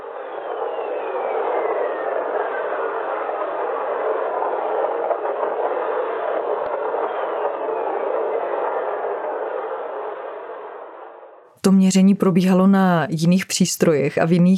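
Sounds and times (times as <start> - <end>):
Jupiter thunderstorm recorded by Voyager: 0.0 - 11.5
speech: 11.7 - 14.5.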